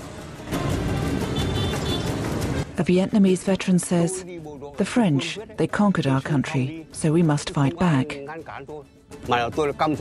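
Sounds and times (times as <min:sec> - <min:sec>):
bustling traffic on a Vietnamese street: 0:00.0 - 0:06.8
speech: 0:02.8 - 0:09.9.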